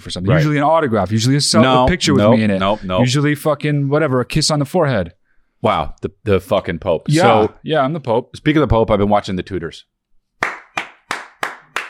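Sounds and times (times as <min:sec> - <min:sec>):
speech: 0:00.0 - 0:09.9
hand clapping: 0:10.4 - 0:11.8.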